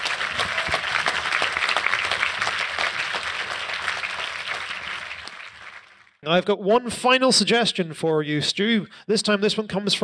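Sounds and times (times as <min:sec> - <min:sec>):
audience applause: 0:00.0 - 0:06.2
speech: 0:06.3 - 0:10.0.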